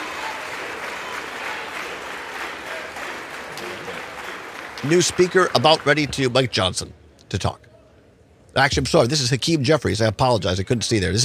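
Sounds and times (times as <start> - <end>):
applause in House chamber: 0.0 - 6.5
speech: 4.8 - 7.7, 8.5 - 11.2.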